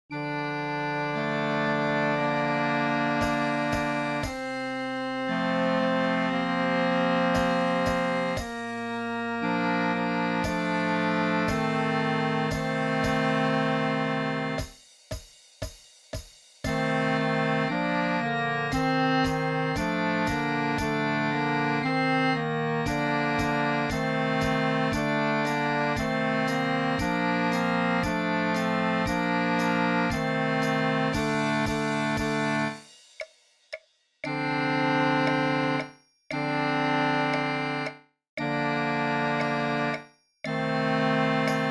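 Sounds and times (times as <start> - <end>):
concert duet: 0.1 - 14.7, 16.7 - 32.8, 34.3 - 41.6.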